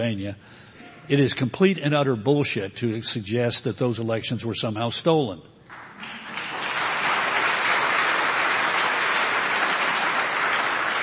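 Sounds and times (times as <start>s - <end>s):
speech: 0.0s - 5.5s
crowd applauding: 5.7s - 11.0s.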